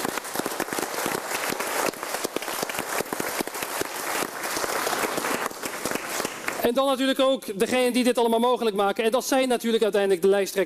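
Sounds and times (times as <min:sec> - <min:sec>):
audience applause: 0:00.0 - 0:06.7
speech: 0:06.6 - 0:10.6.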